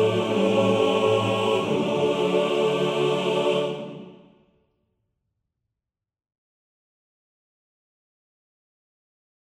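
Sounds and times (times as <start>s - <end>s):
male choir singing a motet: 0.0s - 4.4s.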